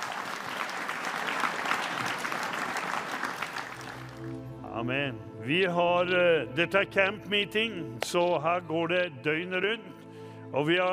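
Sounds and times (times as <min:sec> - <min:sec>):
audience applause: 0:00.0 - 0:04.4
speech: 0:04.8 - 0:09.9, 0:10.5 - 0:10.9.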